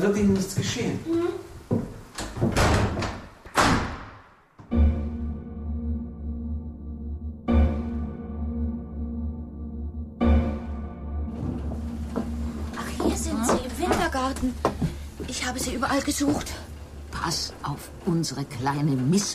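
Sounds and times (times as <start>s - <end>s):
speech: 0.0s - 1.5s, 15.8s - 16.6s, 17.3s - 19.3s
door shutting and locking: 2.2s - 4.2s
low droning hum: 4.7s - 19.1s.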